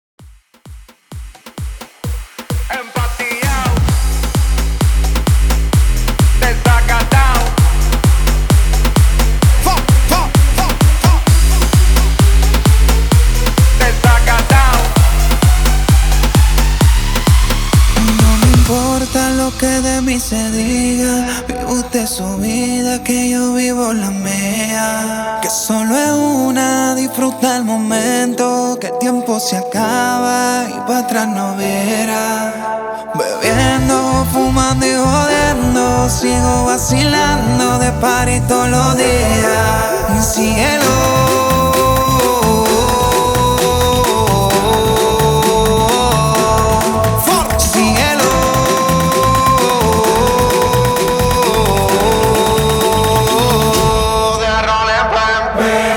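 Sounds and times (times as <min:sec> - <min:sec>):
big room dance music at 130 BPM: 0:00.2 - 0:32.5, 0:33.1 - 0:55.9.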